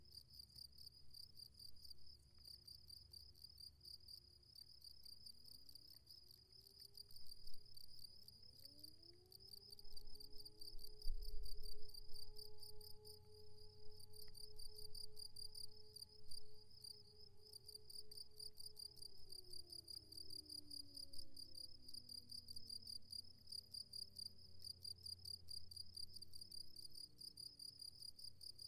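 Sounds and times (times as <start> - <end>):
crickets chirping in a hollow on the Hesselberg: 0.0 - 28.6.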